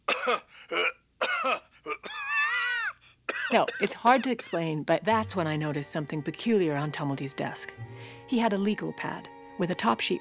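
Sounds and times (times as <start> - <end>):
person coughing: 0.0 - 4.5
speech: 0.2 - 1.6, 3.5 - 10.1.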